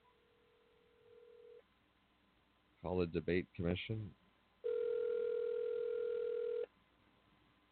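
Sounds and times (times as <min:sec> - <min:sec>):
speech: 0:02.8 - 0:04.2
telephone ringing on speakerphone: 0:04.6 - 0:06.7.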